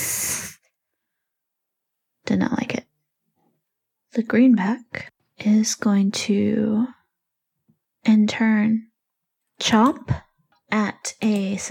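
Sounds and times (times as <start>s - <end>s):
voice imitating a hissing cockroach: 0.0s - 0.6s
speech: 2.3s - 2.8s, 4.1s - 7.0s, 8.0s - 8.9s, 9.6s - 11.7s.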